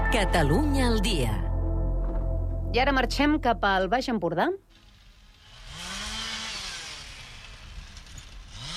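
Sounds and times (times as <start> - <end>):
speech: 0.1 - 1.4, 2.7 - 4.6
chainsaws cutting roadside trees: 4.8 - 8.7.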